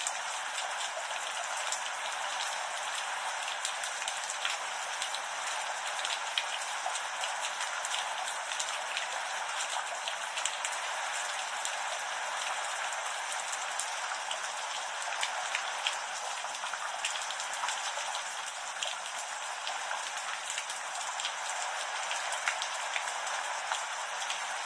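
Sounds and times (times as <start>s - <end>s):
rainstorm: 0.0s - 24.6s.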